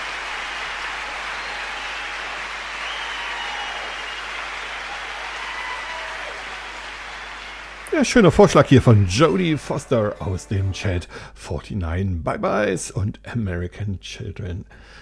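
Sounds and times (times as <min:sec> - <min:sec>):
cheering and applause: 0:00.0 - 0:10.8
speech: 0:07.9 - 0:15.0.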